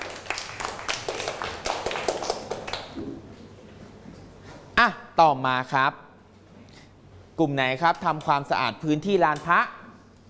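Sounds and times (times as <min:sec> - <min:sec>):
classmates clapping: 0:00.0 - 0:03.3
speech: 0:04.8 - 0:06.0, 0:07.4 - 0:09.8.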